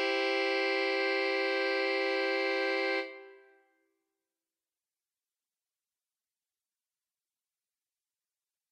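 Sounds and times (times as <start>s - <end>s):
saxophone trio playing: 0.0s - 3.3s.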